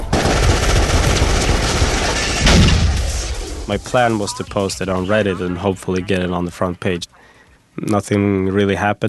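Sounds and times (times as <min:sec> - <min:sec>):
gunfire in a movie trailer: 0:00.1 - 0:03.3
speech: 0:03.7 - 0:09.0.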